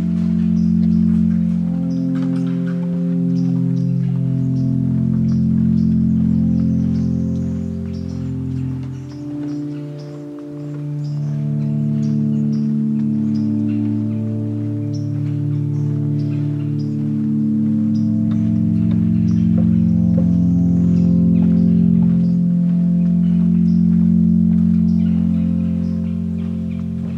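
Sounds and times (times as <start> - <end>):
low hum of overlapping tones in Corkscrew Swamp: 0.0 - 27.1.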